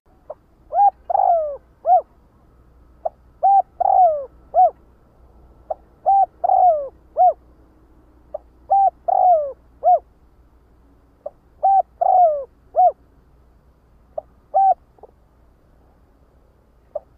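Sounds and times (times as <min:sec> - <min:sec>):
spotted dove cooing: 0:00.2 - 0:02.2, 0:03.0 - 0:04.8, 0:05.7 - 0:07.5, 0:08.3 - 0:10.1, 0:11.2 - 0:13.0, 0:14.2 - 0:15.2.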